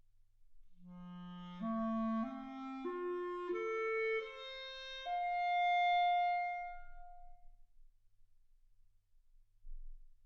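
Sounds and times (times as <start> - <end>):
clarinet: 0.8 - 7.4.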